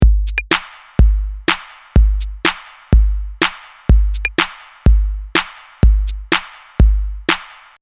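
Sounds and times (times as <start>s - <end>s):
simple beat: 0.0s - 7.7s.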